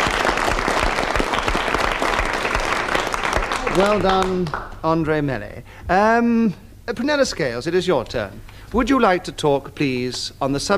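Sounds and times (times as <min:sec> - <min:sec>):
audience applause: 0:00.0 - 0:04.8
speech: 0:03.8 - 0:10.7.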